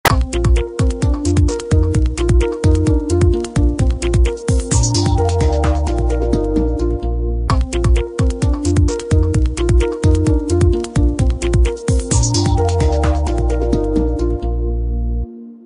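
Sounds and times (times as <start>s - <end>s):
ringtone: 0.1s - 14.8s.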